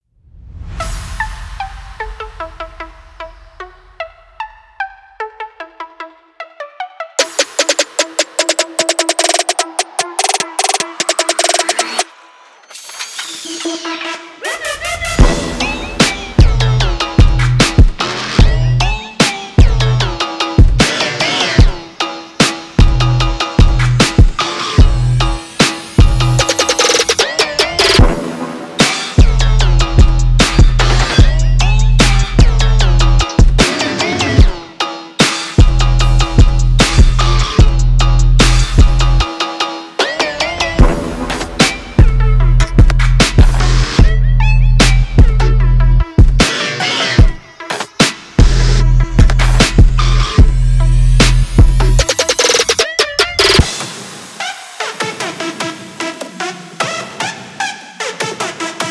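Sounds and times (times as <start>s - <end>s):
trap beat: 7.2s - 12.1s, 12.7s - 53.8s.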